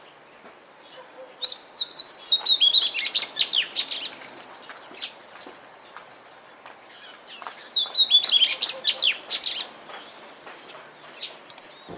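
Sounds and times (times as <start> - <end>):
Oriental magpie-robin giving sharp high notes and slurred whistles: 1.4 - 4.0, 7.7 - 9.6.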